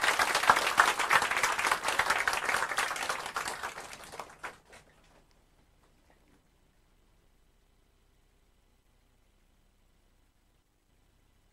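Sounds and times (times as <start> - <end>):
audience applause welcoming a speaker: 0.0 - 5.3.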